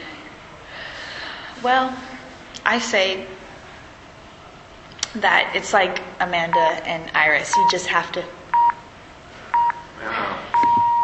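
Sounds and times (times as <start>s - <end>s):
speech: 1.6s - 3.4s, 5.1s - 8.4s
mobile phone electronic tones: 7.5s - 7.8s, 8.6s - 8.8s, 9.6s - 9.9s, 10.6s - 11.0s.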